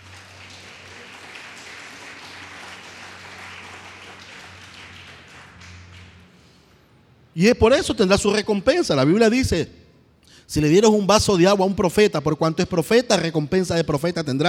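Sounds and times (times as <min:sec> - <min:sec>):
audience applauding: 0:00.0 - 0:06.8
speech: 0:07.4 - 0:09.8, 0:10.5 - 0:14.4.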